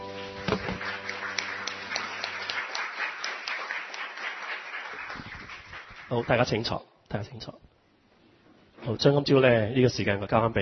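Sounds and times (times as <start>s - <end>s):
audience applause: 0.0s - 6.6s
speech: 6.1s - 7.7s, 8.8s - 10.5s.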